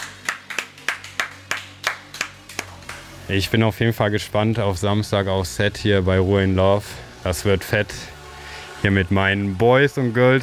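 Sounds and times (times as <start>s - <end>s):
audience applause: 0.0s - 3.0s
speech: 3.3s - 8.1s, 8.8s - 10.4s.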